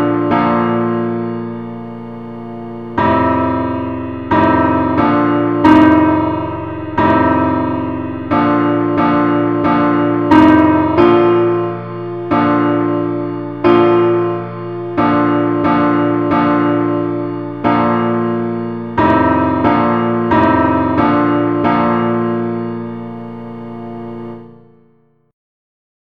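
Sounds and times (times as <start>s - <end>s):
simple accompaniment in B flat: 0.0s - 25.2s.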